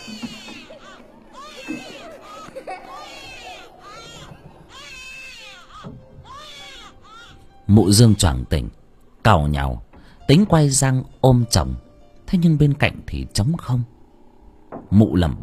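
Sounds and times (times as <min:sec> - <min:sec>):
murmur: 0:00.0 - 0:07.0
child crying and laughing in a house at night: 0:00.0 - 0:07.4
speech: 0:07.7 - 0:14.0, 0:14.9 - 0:15.4.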